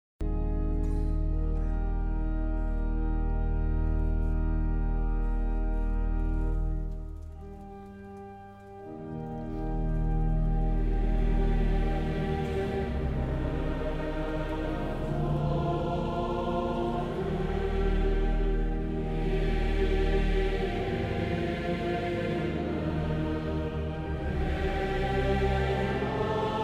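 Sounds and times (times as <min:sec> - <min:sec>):
organ chorale: 0:00.2 - 0:26.6
congregation singing a psalm: 0:08.8 - 0:26.6.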